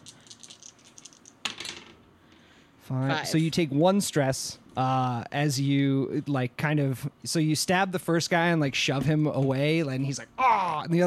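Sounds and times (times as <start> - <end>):
three dice being rolled: 0.0 - 2.0
speech: 2.9 - 11.0.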